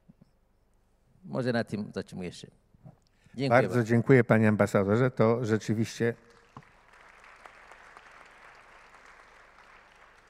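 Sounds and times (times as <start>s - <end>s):
speech: 1.3s - 2.6s, 3.4s - 6.3s
audience applause: 6.3s - 10.2s.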